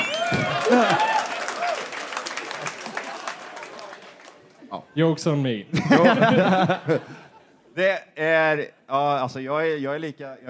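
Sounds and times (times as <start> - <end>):
laughter: 0.0 - 1.2, 5.7 - 7.6
live audience applause: 0.0 - 4.6
speech: 0.3 - 1.1, 5.0 - 10.4.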